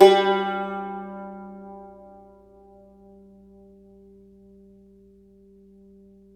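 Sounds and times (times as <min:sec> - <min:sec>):
cumbus note: 0:00.0 - 0:03.7.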